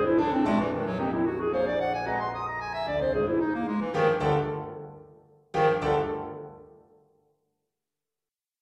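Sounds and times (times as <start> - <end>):
clarinet playing energetic arpeggios: 0.0 - 6.6
piano playing: 0.0 - 6.8.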